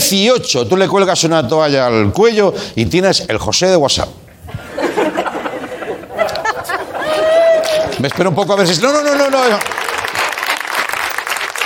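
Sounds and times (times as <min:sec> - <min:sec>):
speech: 0:00.1 - 0:04.3, 0:08.0 - 0:09.8
laughter: 0:04.5 - 0:08.4
crowd applauding: 0:06.2 - 0:11.6.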